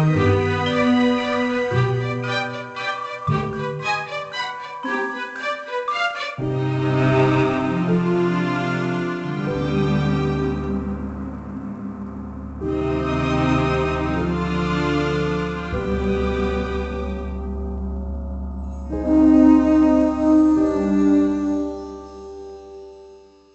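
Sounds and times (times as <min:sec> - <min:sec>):
music: 0:00.0 - 0:23.5.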